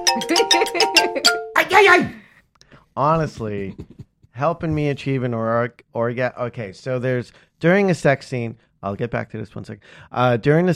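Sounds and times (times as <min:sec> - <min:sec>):
bell ringing: 0:00.0 - 0:01.7
speech: 0:00.0 - 0:02.2, 0:03.0 - 0:10.7.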